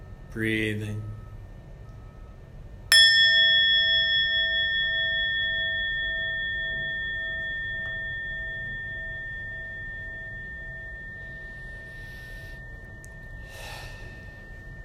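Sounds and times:
meditation bell ringing: 0.0s - 14.8s
speech: 0.4s - 1.1s.

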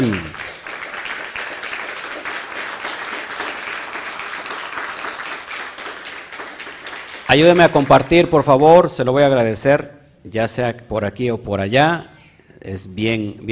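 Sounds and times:
audience applause: 0.0s - 8.5s
speech: 7.3s - 13.5s.

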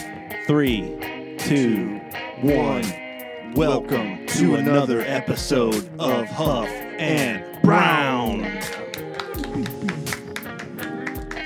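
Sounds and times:
speech: 0.5s - 3.0s, 3.6s - 8.8s
wave of hand claps: 8.5s - 11.4s.

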